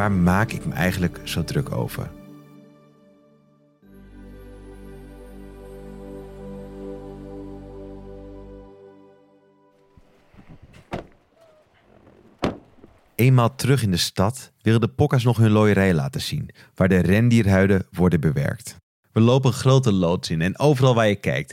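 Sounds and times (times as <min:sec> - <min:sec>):
speech: 0:00.0 - 0:02.2, 0:13.2 - 0:21.5
faint rustling: 0:09.8 - 0:13.2
car engine humming: 0:09.8 - 0:13.3.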